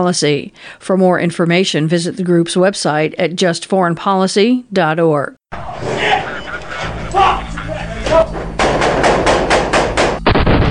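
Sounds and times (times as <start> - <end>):
speech: 0.0 - 5.9
laughter: 5.6 - 9.3
gunfire during the U.S. military offensive in Marja, Afghanistan: 8.6 - 10.6.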